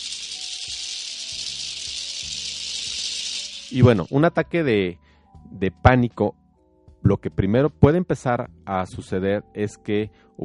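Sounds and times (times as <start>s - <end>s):
second maraca being shaken: 0.0s - 4.4s
speech: 3.7s - 6.4s, 7.0s - 10.4s.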